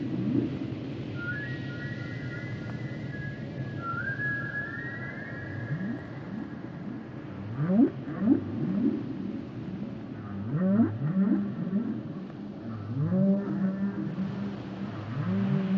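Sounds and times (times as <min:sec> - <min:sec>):
whale song of whistles and whoops: 0:00.0 - 0:15.7
constant low rumble: 0:05.4 - 0:15.7.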